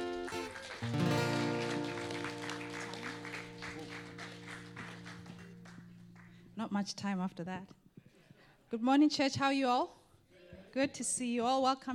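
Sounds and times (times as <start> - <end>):
audience clapping in a church: 0.0 - 6.6
speech: 6.6 - 7.8, 8.7 - 10.0, 10.8 - 11.9.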